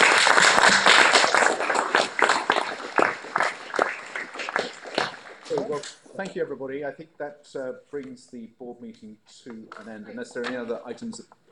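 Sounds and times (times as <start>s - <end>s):
applause: 0.0s - 6.0s
speech: 6.2s - 11.4s.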